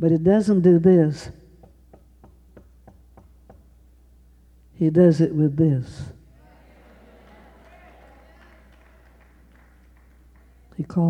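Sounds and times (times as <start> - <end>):
speech: 0.0 - 1.4, 4.8 - 6.2, 10.8 - 11.0
knocking on a door: 1.6 - 3.8
laughter: 6.3 - 10.7.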